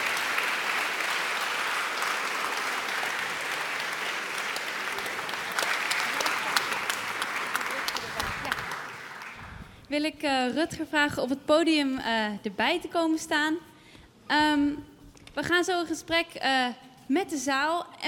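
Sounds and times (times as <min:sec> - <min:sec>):
audience applause: 0:00.0 - 0:09.7
speech: 0:09.9 - 0:13.7, 0:14.3 - 0:18.0.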